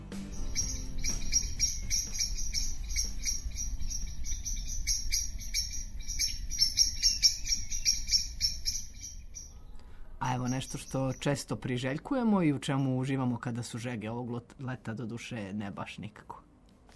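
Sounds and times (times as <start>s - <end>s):
crickets chirping on a summer afternoon in a forest: 0.4s - 9.6s
soft low rumble: 1.2s - 6.7s
speech: 10.6s - 16.5s.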